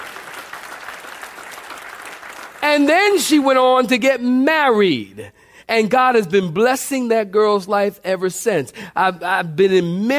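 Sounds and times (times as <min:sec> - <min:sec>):
audience clapping hands: 0:00.0 - 0:03.2
speech: 0:02.6 - 0:10.1.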